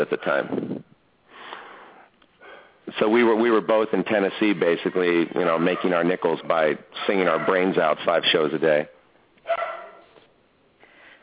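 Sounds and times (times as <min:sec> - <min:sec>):
speech: 0:00.1 - 0:00.7, 0:03.0 - 0:09.7
dog barking: 0:07.0 - 0:07.7, 0:09.4 - 0:10.2.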